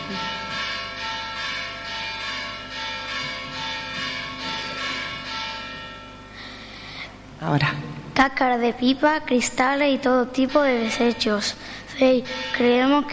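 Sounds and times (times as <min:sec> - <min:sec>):
church bells ringing: 0:00.0 - 0:06.7, 0:09.8 - 0:13.1
speech: 0:07.4 - 0:13.1.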